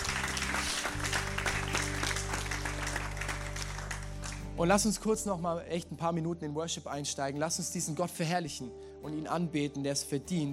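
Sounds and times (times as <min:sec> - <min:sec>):
church audience applause: 0:00.0 - 0:04.5
speech: 0:04.6 - 0:10.5.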